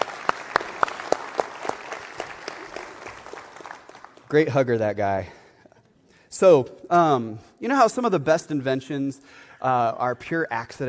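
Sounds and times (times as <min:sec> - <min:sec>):
audience applauding: 0:00.0 - 0:04.6
speech: 0:04.3 - 0:05.4, 0:06.4 - 0:10.8.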